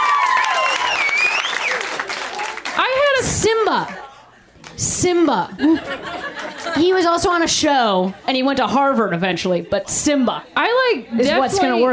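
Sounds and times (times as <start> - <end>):
high cheering or whooping voices: 0.0 - 2.7
audience clapping: 0.0 - 4.8
speech: 3.2 - 4.1, 4.8 - 11.9
laughter: 5.3 - 7.2.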